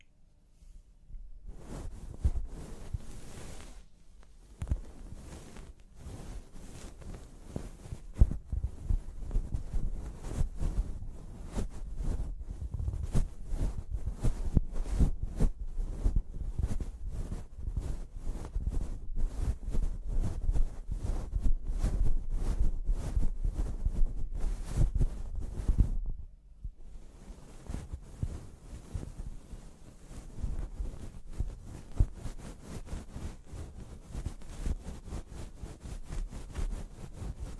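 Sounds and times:
fingers scrubbing through hair in a scalp massage: 0:01.5 - 0:26.1, 0:26.9 - 0:37.5.

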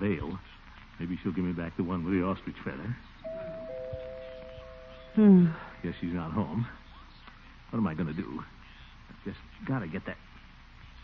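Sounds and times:
speech: 0:00.0 - 0:03.2, 0:05.2 - 0:06.8, 0:07.7 - 0:08.6, 0:09.2 - 0:10.3
doorbell ringing: 0:03.3 - 0:05.7.

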